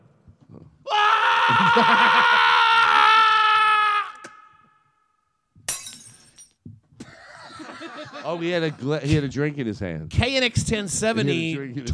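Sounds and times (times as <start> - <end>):
wavering scream-like wail: 0.9 - 4.7
laughter: 1.5 - 2.5, 7.0 - 9.3
speech: 1.8 - 2.4, 8.3 - 11.9
light bulb shattering: 5.7 - 6.6.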